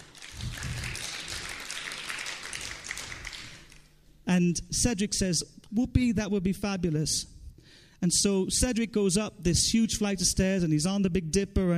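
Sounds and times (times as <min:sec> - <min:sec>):
crowd applause: 0:00.0 - 0:03.8
speech: 0:04.3 - 0:07.3, 0:08.0 - 0:11.7.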